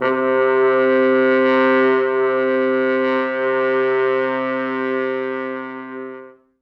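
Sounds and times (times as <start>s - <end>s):
four French horns with soft mutes playing C2: 0.0s - 6.5s.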